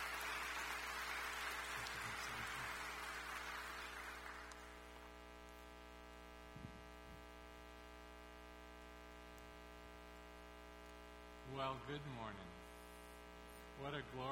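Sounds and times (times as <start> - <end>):
crowd applauding: 0.0 - 4.8
faint electrical hum: 0.0 - 14.2
speech: 11.5 - 12.6, 13.8 - 14.2.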